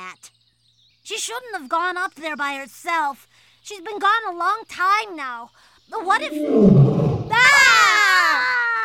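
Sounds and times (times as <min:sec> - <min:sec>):
speech: 0:01.1 - 0:07.7
murmur: 0:06.1 - 0:07.5
wild, desperately hungry animal's blood-curdling roar: 0:06.2 - 0:07.6.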